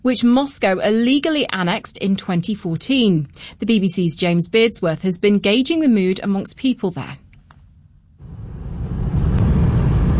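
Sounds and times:
speech: 0.0s - 7.2s
cars in heavy traffic on bridge: 8.2s - 10.1s.

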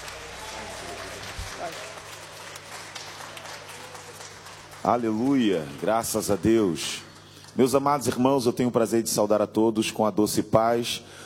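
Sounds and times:
audience clapping: 0.0s - 8.7s
speech: 4.8s - 11.2s.

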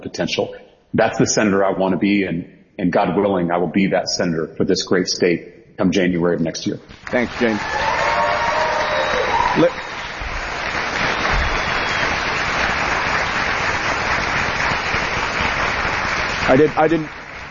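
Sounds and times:
speech: 0.0s - 7.9s, 9.6s - 9.8s, 16.5s - 17.2s
audience applause: 7.0s - 17.4s.

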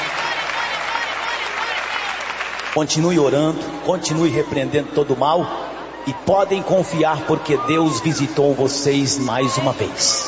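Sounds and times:
church congregation clapping in praise: 0.0s - 3.5s
speech: 2.8s - 10.2s.

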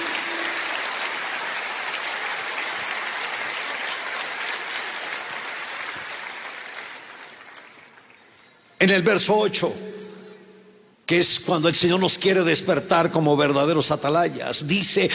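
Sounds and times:
audience applause: 0.0s - 8.4s
speech: 8.8s - 10.0s, 11.1s - 15.1s.

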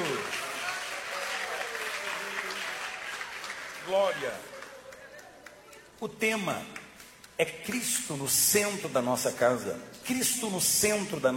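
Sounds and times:
audience clapping hands: 0.0s - 8.2s
speech: 3.9s - 4.5s, 6.0s - 6.8s, 7.4s - 11.3s.

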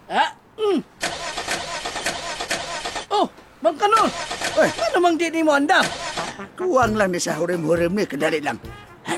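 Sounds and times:
car engine starting and running roughly: 1.0s - 3.1s, 4.0s - 5.0s, 5.8s - 6.4s
speech: 5.0s - 6.0s, 6.6s - 8.8s.

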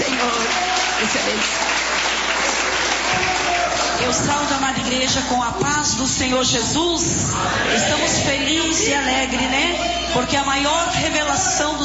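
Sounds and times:
church congregation clapping during a worship service: 0.0s - 5.2s
speech: 1.0s - 1.6s, 4.0s - 11.8s.

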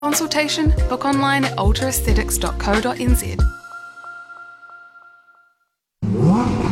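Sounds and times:
speech: 0.1s - 3.6s
car engine revving: 6.0s - 6.7s.

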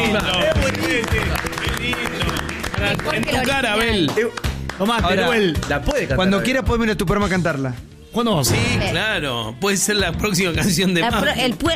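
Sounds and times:
audience applause: 0.0s - 4.9s
speech: 0.1s - 2.2s, 2.8s - 11.7s.

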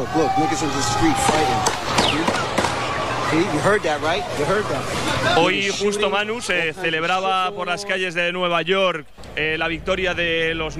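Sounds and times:
speech: 0.0s - 2.4s, 3.3s - 10.7s
people shouting: 0.0s - 6.8s
crowd murmur in a city square: 0.0s - 7.9s
gunshots in a city square: 1.2s - 3.2s.

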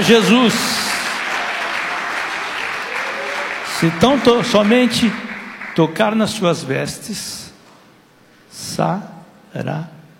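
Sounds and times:
speech: 0.0s - 1.0s, 3.8s - 5.2s, 5.8s - 7.4s, 8.5s - 10.0s
congregation clapping hands in praise to Jesus: 0.0s - 6.7s.

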